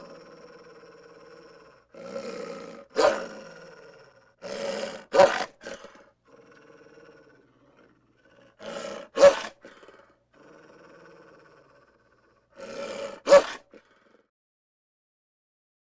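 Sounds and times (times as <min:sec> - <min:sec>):
dog growling and snarling: 0:00.0 - 0:14.3.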